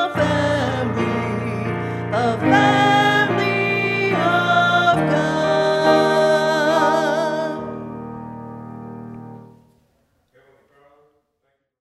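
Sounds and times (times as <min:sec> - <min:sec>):
closing hymn: 0:00.0 - 0:08.0.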